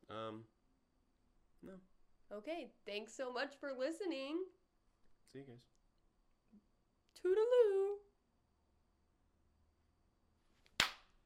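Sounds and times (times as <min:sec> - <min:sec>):
speech: 0:01.6 - 0:04.6, 0:05.3 - 0:05.8, 0:07.2 - 0:08.0
hand clapping: 0:10.7 - 0:11.1.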